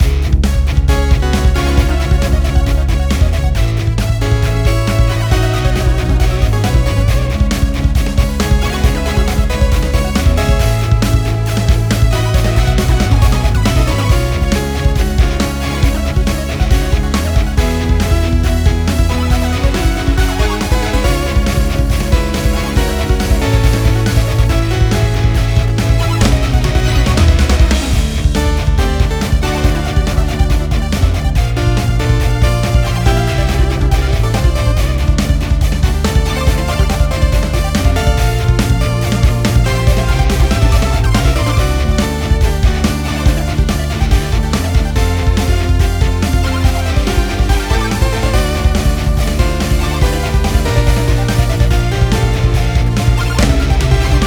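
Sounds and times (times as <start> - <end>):
classic progressive background music: 0.0 - 54.2.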